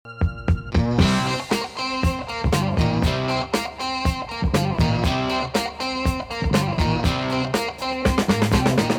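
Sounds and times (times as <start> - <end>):
music: 0.0 - 8.9.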